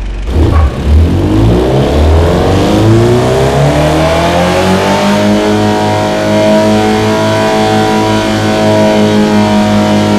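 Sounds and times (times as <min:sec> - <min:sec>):
car engine revving: 0:00.0 - 0:10.1.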